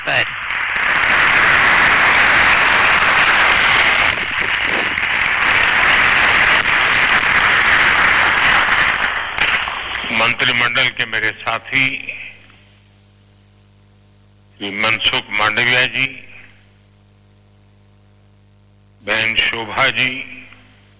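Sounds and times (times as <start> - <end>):
loud audience applause: 0.0 - 10.4
speech: 11.1 - 12.2, 14.6 - 16.2, 19.1 - 20.4.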